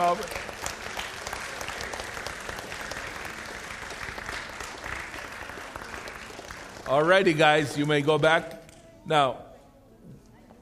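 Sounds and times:
speech: 0.0 - 0.5, 6.9 - 9.4
audience applause: 0.0 - 8.0.

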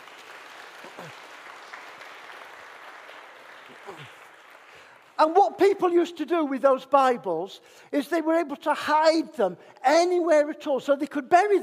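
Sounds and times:
audience applause: 0.0 - 5.3
speech: 1.0 - 1.3, 3.8 - 4.2, 5.2 - 11.6.

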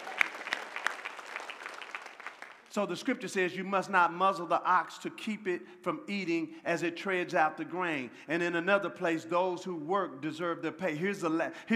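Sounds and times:
church congregation clapping during a sermon: 0.0 - 2.8
speech: 2.8 - 11.7.

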